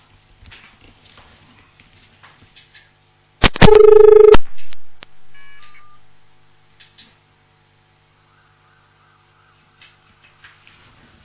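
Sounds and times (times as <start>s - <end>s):
phone line click: 3.4s - 4.8s, 5.4s - 6.0s
short beeps: 3.5s - 4.4s, 5.3s - 6.0s
faint higher tone: 5.3s - 6.1s.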